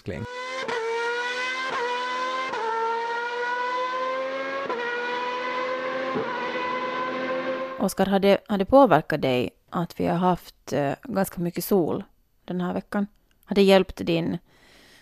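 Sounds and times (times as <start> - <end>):
speech: 0.0 - 0.7, 7.8 - 14.6
Formula 1 race cars screaming past: 0.0 - 7.8.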